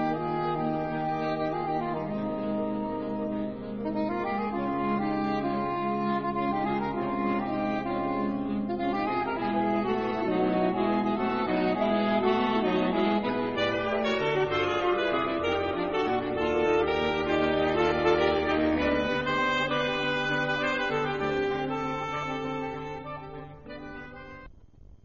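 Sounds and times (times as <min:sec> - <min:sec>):
saxophone quintet playing: 0:00.0 - 0:24.5.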